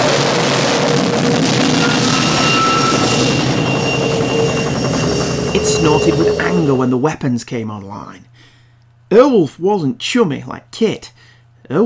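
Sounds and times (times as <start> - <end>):
howling aircraft engine in flight: 0.1 - 7.0
speech: 5.8 - 8.5, 9.1 - 11.8.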